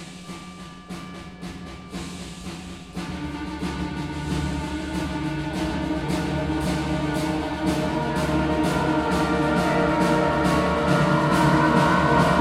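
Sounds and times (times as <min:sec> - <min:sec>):
honor band playing: 0:03.6 - 0:12.3.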